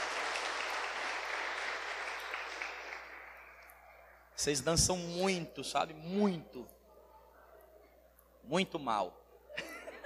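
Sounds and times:
crowd applauding: 0.0 - 4.2
speech: 4.4 - 6.8, 8.5 - 9.7
laughter: 9.5 - 10.0.

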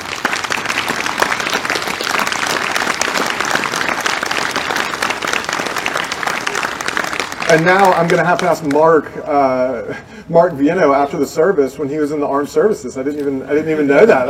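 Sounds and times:
audience applause: 0.0 - 8.8
speech: 7.5 - 14.2.

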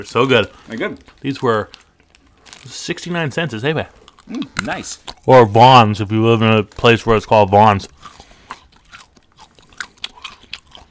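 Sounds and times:
speech: 0.0 - 1.8, 2.6 - 8.2
chewing hard-shelled milk chocolate mini eggs: 0.0 - 5.6, 6.6 - 10.8.

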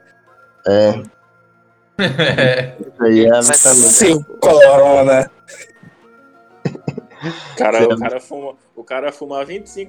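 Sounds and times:
speech: 0.6 - 1.2, 2.0 - 5.7, 7.2 - 9.8
laughter: 2.0 - 2.8, 6.7 - 8.2
man coughing: 5.5 - 5.8, 6.7 - 7.2.

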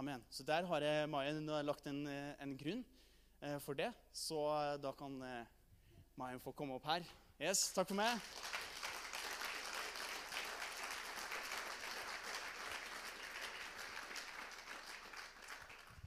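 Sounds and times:
speech: 0.0 - 5.6, 6.2 - 8.5
audience applause: 8.2 - 16.0.

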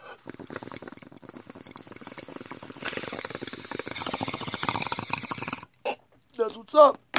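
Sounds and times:
bowl of weed crackling and bubbling while smoked: 0.0 - 6.0
speech: 6.5 - 7.0.

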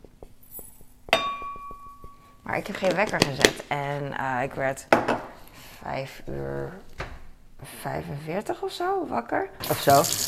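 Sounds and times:
cups clinking while making coffee: 0.5 - 2.9
speech: 2.5 - 5.2, 5.8 - 6.9, 7.6 - 10.2.

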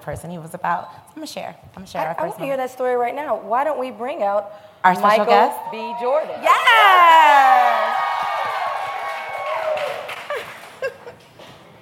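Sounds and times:
speech: 0.0 - 8.0
audience yelling and cheering: 5.5 - 10.2
high-pitched screams and whoops: 5.6 - 10.6.

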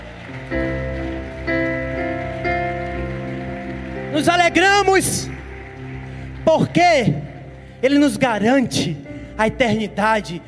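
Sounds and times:
audience applauding: 0.0 - 8.3
sustained keyboard chords: 0.0 - 10.4
speech: 4.2 - 5.4, 6.5 - 7.2, 7.8 - 10.4.

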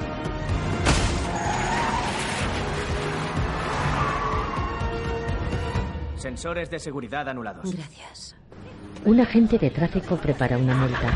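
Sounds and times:
minivan engine and tire noise in an action film: 0.2 - 6.0, 8.5 - 11.1
minivan crashing into newspaper dispensers: 0.6 - 4.5
speech: 6.2 - 8.4, 9.0 - 11.1.

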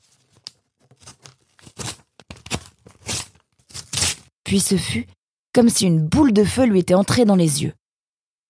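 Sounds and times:
knife cutting a fabric blindfold: 1.0 - 4.3
speech: 4.5 - 7.8.

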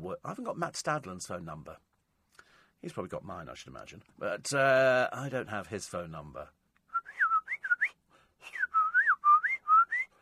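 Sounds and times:
speech: 0.0 - 1.9, 2.8 - 6.6
person whistling a birdsong imitation: 6.9 - 10.1.

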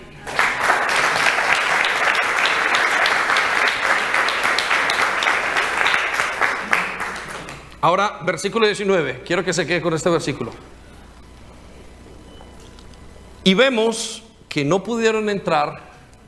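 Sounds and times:
audience applause: 0.2 - 7.8
speech: 7.8 - 10.7, 13.5 - 15.9.

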